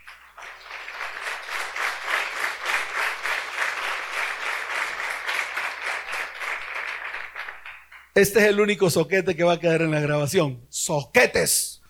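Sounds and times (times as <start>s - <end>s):
audience applause: 0.0s - 8.1s
speech: 8.2s - 11.7s.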